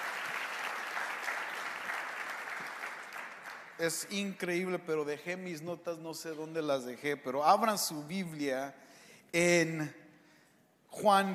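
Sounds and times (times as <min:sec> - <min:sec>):
audience applause: 0:00.0 - 0:03.8
speech: 0:03.8 - 0:10.0, 0:11.0 - 0:11.3.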